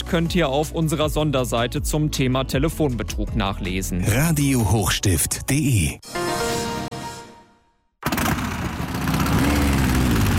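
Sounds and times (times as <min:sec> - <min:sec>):
speech: 0:00.1 - 0:06.2
vintage motorcycle engine idling: 0:08.0 - 0:10.3.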